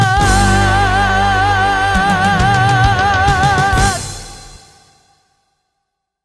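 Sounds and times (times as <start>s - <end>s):
jingle: 0.2s - 5.0s.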